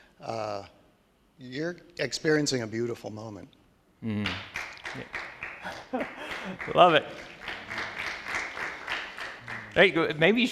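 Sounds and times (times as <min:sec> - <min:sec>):
speech: 0:00.2 - 0:00.8, 0:01.4 - 0:07.4, 0:09.8 - 0:10.5
applause: 0:04.2 - 0:10.5
laughter: 0:05.6 - 0:08.4.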